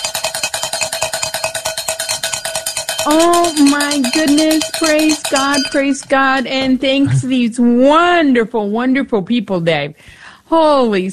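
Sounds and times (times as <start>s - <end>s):
cowbells clanging: 0.0s - 6.8s
speech: 3.0s - 11.1s.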